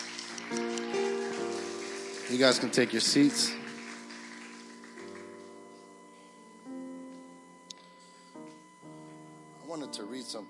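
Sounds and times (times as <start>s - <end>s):
crowd round of applause: 0.0s - 5.5s
speech: 2.3s - 3.6s, 10.3s - 10.4s.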